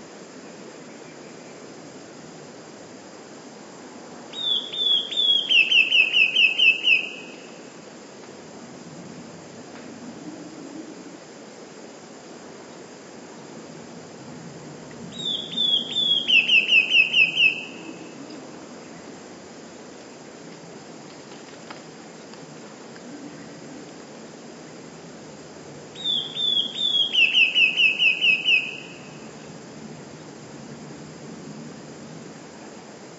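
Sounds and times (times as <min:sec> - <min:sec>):
quiet hiss: 0:00.0 - 0:33.1
Eurasian blue tit song: 0:04.3 - 0:07.6, 0:15.1 - 0:18.0, 0:26.0 - 0:29.3.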